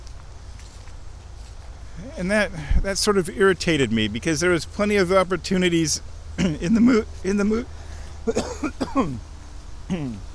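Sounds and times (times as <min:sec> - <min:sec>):
speech: 0:02.0 - 0:09.3, 0:09.9 - 0:10.3
person clearing throat: 0:08.3 - 0:09.2, 0:09.9 - 0:10.2.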